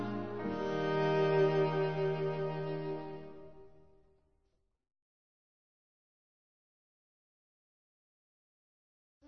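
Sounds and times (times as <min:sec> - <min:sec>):
instrumental hymn: 0:00.0 - 0:03.8.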